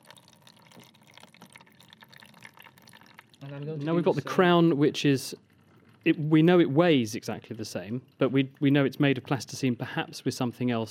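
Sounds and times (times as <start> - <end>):
water trickling out into a bowl: 0.0 - 9.8
speech: 3.4 - 10.8.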